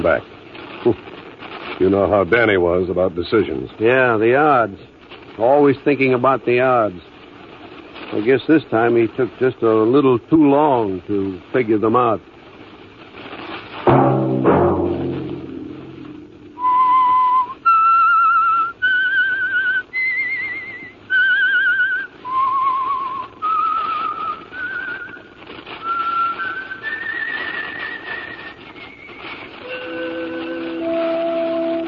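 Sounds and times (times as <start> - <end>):
speech: 0.0 - 1.2, 1.8 - 7.1, 8.1 - 12.3
low musical sting: 13.9 - 16.7
person whistling a slow eerie theme melody: 16.6 - 25.1, 25.8 - 31.8.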